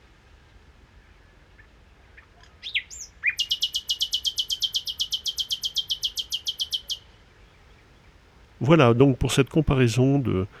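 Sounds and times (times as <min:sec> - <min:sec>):
common nightingale song: 0:02.6 - 0:10.5
speech: 0:08.6 - 0:10.5.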